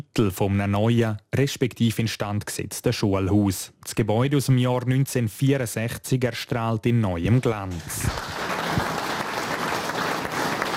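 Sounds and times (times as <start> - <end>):
speech: 0.2 - 8.4
applause at building opening: 7.3 - 10.7.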